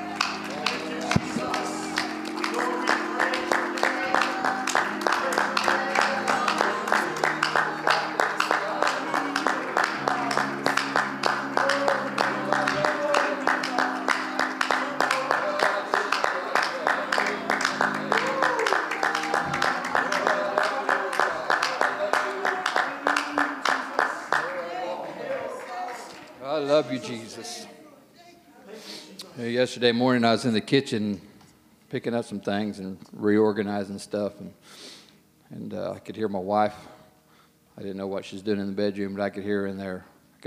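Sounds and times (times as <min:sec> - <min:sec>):
audience clapping hands in praise: 0:00.0 - 0:27.2
speech: 0:29.6 - 0:31.3, 0:31.9 - 0:34.8, 0:35.7 - 0:36.9, 0:37.8 - 0:40.4.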